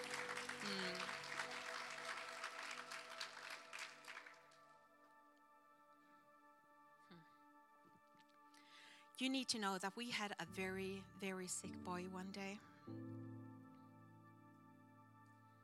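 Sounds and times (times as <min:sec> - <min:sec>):
audience applause: 0:00.0 - 0:04.7
speech: 0:00.6 - 0:01.2, 0:09.2 - 0:13.2.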